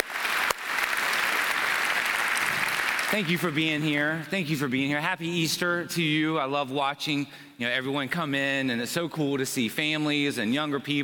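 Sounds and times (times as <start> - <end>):
audience applauding: 0.0 - 3.8
speech: 3.1 - 11.0.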